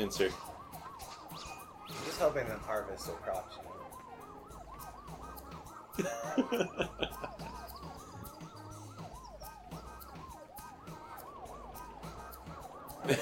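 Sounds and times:
speech: 0.0s - 0.5s, 2.2s - 3.7s, 6.0s - 8.0s, 13.0s - 13.2s
ambulance siren wailing in a video game: 0.0s - 13.2s
laughter: 6.0s - 7.5s, 13.0s - 13.2s.

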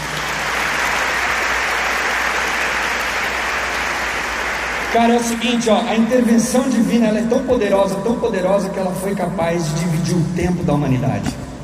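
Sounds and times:
audience applause: 0.0s - 6.1s
speech: 4.9s - 11.4s.

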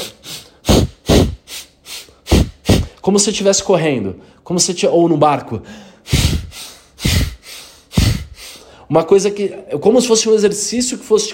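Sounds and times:
rapid short hyperventilation breathing: 0.0s - 3.0s, 5.6s - 8.9s
speech: 3.1s - 6.2s, 8.9s - 11.3s.

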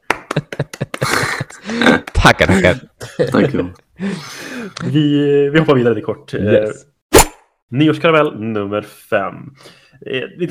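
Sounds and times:
hands clapping: 0.0s - 2.3s
laughter: 0.2s - 3.8s
speech: 1.7s - 6.9s, 7.7s - 10.4s.

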